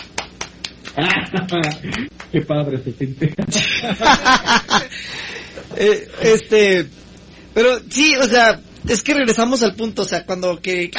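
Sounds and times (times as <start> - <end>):
hand claps: 0.0 - 2.4
laughter: 1.0 - 2.1, 3.2 - 6.0
speech: 1.0 - 7.0, 7.6 - 10.9.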